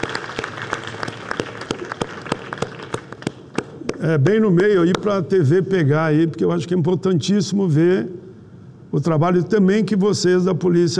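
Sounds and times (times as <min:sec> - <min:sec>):
audience applause: 0:00.0 - 0:03.4
speech: 0:04.0 - 0:08.2, 0:08.9 - 0:10.9.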